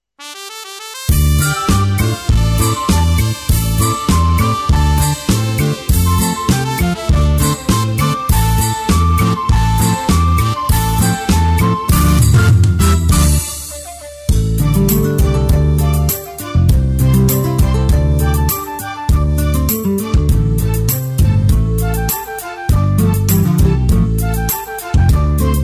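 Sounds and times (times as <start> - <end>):
music beat: 1.0 - 25.6.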